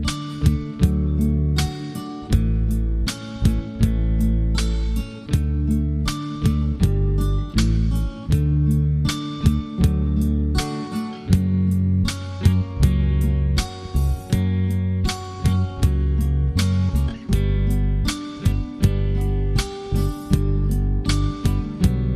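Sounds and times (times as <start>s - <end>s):
pedal steel guitar ballad without melody: 0.0s - 22.1s.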